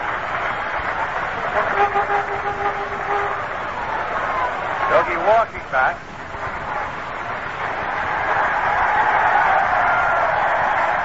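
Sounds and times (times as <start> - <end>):
stadium crowd roaring: 0.0 - 11.0
speech: 5.0 - 6.1.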